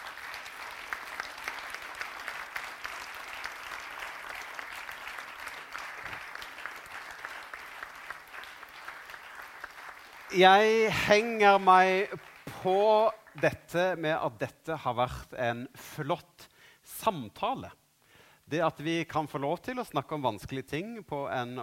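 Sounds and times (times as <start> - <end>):
audience applause: 0.0 - 13.5
speech: 10.3 - 16.4, 17.0 - 17.8, 18.5 - 21.6.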